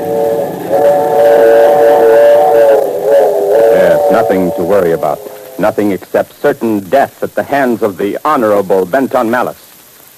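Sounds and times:
train whistle: 0:00.0 - 0:06.0
speech: 0:04.3 - 0:09.6.

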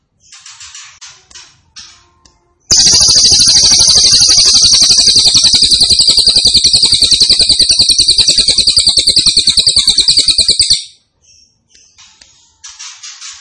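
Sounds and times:
grey-cheeked tit-babbler singing buzzing trills: 0:02.7 - 0:10.9.

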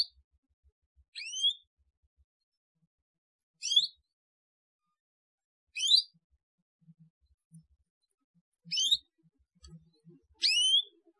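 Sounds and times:
Atlantic canary song: 0:01.0 - 0:01.9, 0:03.5 - 0:04.2, 0:05.7 - 0:11.1.

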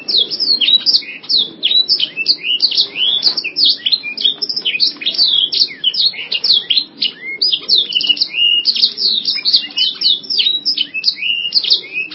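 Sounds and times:
canary singing fast high twittering phrases: 0:00.0 - 0:12.1.

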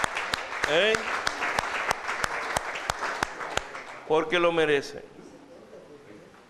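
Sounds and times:
sharp rhythmic claps: 0:00.0 - 0:04.3
audience applause for two brothers: 0:00.0 - 0:04.6
speech: 0:04.1 - 0:05.2.

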